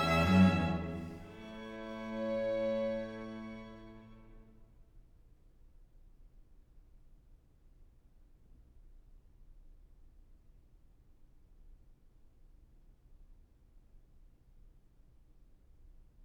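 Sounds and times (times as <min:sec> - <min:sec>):
string quartet in A major allegro: 0:00.0 - 0:04.6.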